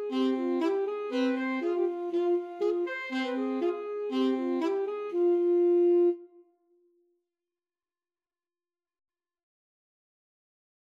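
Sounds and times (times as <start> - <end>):
alto saxophone duet: 0.0 - 6.4.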